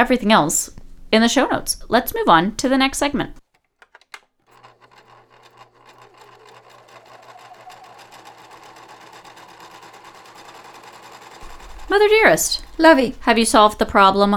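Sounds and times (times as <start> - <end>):
speech: 0.0 - 3.4, 11.9 - 14.3
sewing machine running: 4.4 - 14.3.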